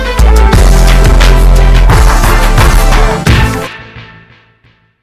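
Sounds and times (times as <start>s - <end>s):
bass tone: 0.2s - 3.7s.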